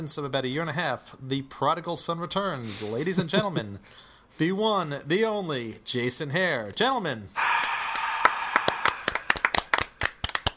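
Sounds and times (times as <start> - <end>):
speech: 0.0 - 7.6
single person clapping: 7.4 - 10.5.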